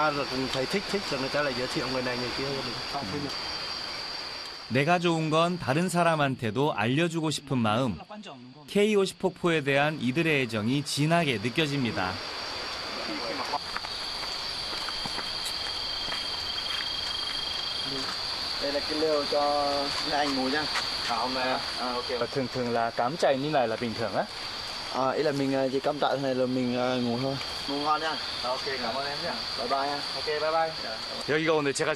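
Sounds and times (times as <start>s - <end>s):
speech: 0.0s - 3.6s, 4.7s - 12.4s, 18.7s - 31.9s
insects chirping at night: 0.0s - 31.9s.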